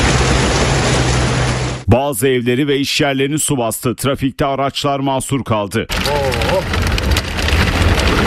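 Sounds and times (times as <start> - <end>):
sudden heavy downpour of rain in Ankara: 0.0 - 1.9, 5.9 - 8.2
speech: 1.9 - 6.9.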